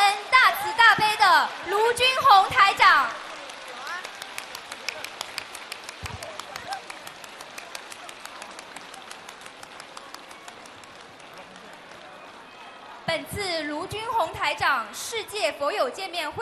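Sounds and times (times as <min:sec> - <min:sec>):
warm applause: 0:00.0 - 0:13.1
speech: 0:13.3 - 0:16.4.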